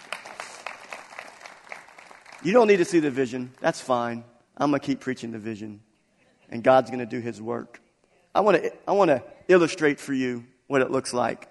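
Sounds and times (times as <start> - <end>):
few people clapping: 0.0 - 3.8
speech: 2.4 - 5.9, 6.5 - 7.8, 8.4 - 11.4.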